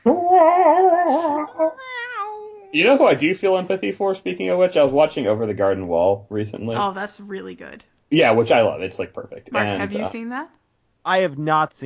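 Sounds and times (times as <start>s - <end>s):
person imitating a cat meow: 0.6s - 3.1s, 9.6s - 10.1s
speech: 2.7s - 11.8s.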